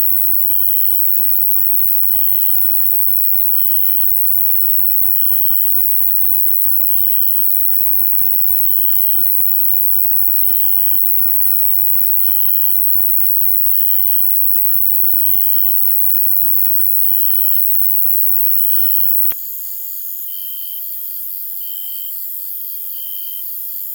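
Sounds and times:
night nature sounds: 0.0 - 23.9.

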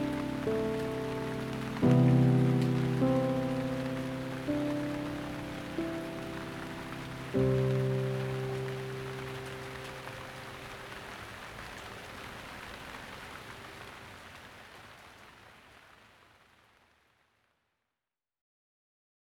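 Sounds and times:
chill piano: 0.0 - 12.8
rain: 0.0 - 17.4.

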